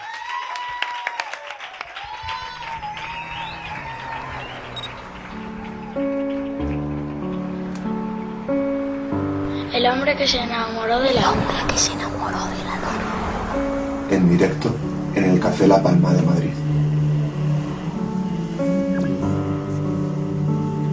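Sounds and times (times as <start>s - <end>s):
whistles and cheers: 0.0s - 7.5s
crowd applauding: 0.0s - 9.0s
sustained musical notes: 2.6s - 20.9s
speech: 9.9s - 16.7s.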